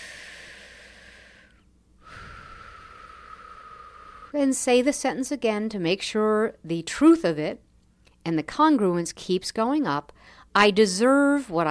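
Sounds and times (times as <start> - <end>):
person taking a deep breath during a tapping exercise: 0.0 - 4.4
speech: 4.3 - 7.6, 8.2 - 11.7.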